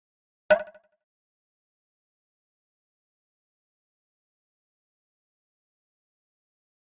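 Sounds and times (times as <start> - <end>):
pop-up hollow tap: 0.5 - 0.8.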